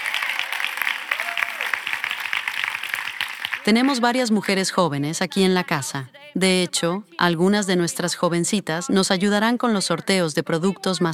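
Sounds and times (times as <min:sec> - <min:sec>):
crowd applause: 0:00.0 - 0:04.6
speech: 0:03.6 - 0:11.1.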